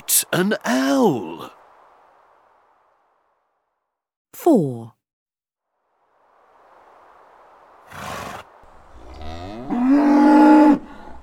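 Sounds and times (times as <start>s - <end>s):
speech: 0.3s - 1.6s, 4.4s - 5.0s
bull bellowing: 8.9s - 11.2s.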